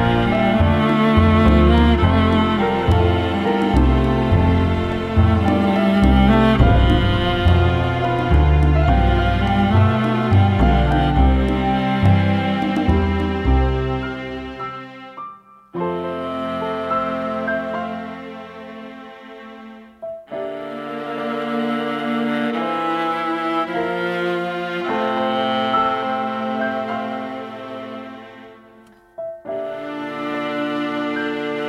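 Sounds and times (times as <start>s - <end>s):
piano: 0.0s - 31.6s
violin: 0.0s - 31.6s.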